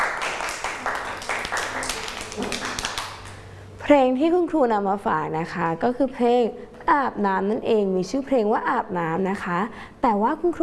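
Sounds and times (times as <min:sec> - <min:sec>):
hands clapping: 0:00.0 - 0:03.4
speech: 0:03.9 - 0:10.6.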